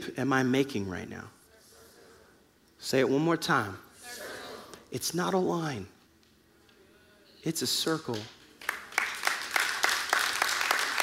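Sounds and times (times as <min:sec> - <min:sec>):
speech: 0:00.2 - 0:01.4, 0:02.8 - 0:04.2, 0:04.9 - 0:06.0, 0:07.4 - 0:08.4
audience clapping: 0:07.8 - 0:11.0.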